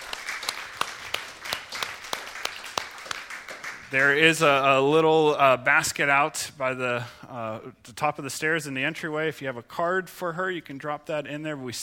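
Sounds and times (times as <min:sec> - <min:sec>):
audience applause: 0:00.0 - 0:04.1
speech: 0:03.9 - 0:11.8.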